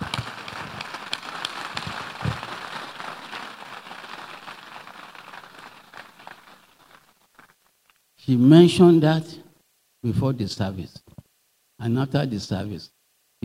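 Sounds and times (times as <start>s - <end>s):
crowd clapping: 0.0s - 7.6s
speech: 8.3s - 9.4s, 10.0s - 11.0s, 11.8s - 13.4s.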